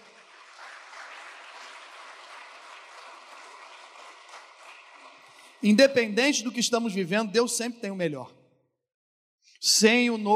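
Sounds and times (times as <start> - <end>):
audience applause: 0.0 - 5.6
speech: 5.6 - 8.4, 9.6 - 10.3.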